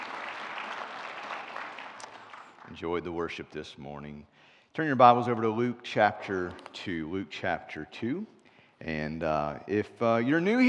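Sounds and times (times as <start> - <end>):
audience applause: 0.0 - 2.8
speech: 2.7 - 10.6.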